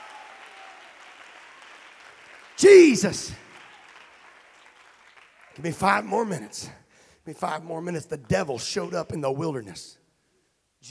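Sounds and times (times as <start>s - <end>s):
audience clapping hands: 0.0s - 6.6s
speech: 2.6s - 3.4s, 5.6s - 10.0s.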